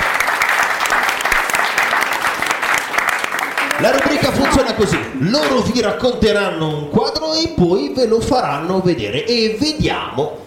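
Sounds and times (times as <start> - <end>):
studio audience applause on a school radio program: 0.0 - 5.7
speech: 3.8 - 10.4.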